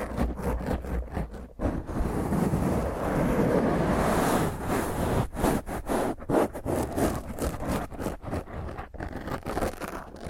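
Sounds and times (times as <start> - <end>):
fingernails scratching across a microphone: 0.0 - 10.2.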